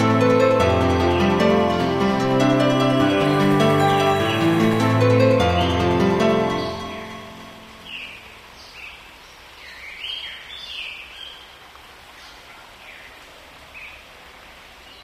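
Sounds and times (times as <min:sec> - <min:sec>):
piano: 0:00.0 - 0:08.2.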